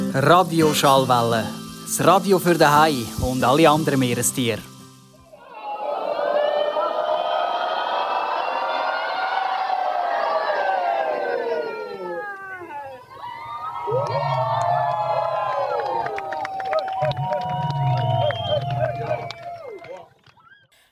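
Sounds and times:
speech: 0.1s - 4.7s
crowd cheering doing a stadium wave: 5.2s - 20.7s
people shouting: 5.3s - 20.0s.

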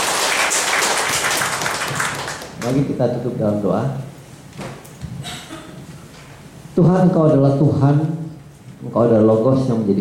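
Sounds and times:
audience applauding the speaker after a church sermon: 0.0s - 2.8s
speech: 2.6s - 4.1s, 6.8s - 8.2s, 8.8s - 9.9s.

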